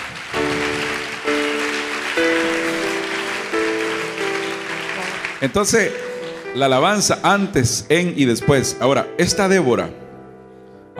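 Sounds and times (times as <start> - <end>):
audience applauding: 0.0 - 7.1
speech: 5.4 - 10.0.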